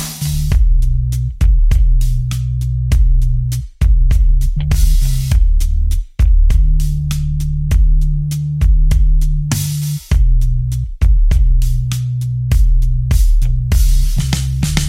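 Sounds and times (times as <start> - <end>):
bass: 0.0 - 14.8
drums: 0.0 - 14.8.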